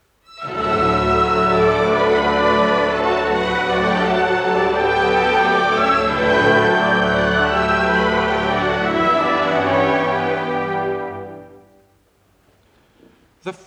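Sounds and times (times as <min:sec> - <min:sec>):
orchestra music: 0:00.3 - 0:12.0.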